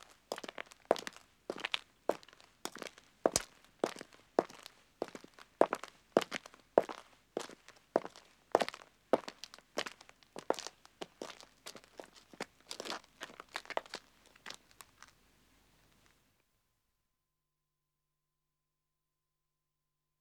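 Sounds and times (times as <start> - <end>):
two men walking on a country road: 0.0 - 15.2.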